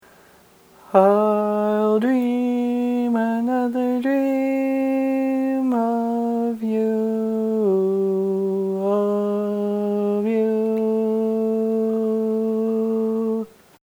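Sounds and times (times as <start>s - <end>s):
barbershop tags sung by baritones and tenor: 0.8s - 13.6s.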